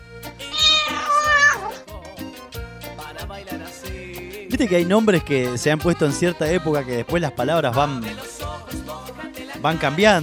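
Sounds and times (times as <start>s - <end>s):
cat meowing sound effect: 0.5s - 1.8s
speech: 4.5s - 8.2s, 9.6s - 10.2s.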